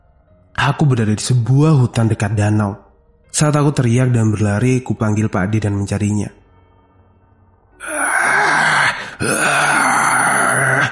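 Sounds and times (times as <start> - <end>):
speech: 0.6 - 6.4
creature moaning in pain: 7.8 - 10.8.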